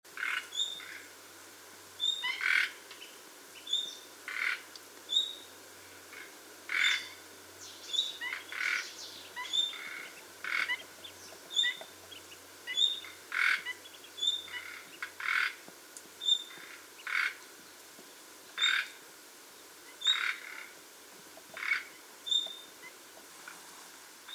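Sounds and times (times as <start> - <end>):
hiss: 0.0 - 24.3
common nightingale calls: 0.2 - 1.1, 2.0 - 15.6, 16.2 - 17.5, 18.6 - 19.0, 19.8 - 20.8, 21.4 - 23.2.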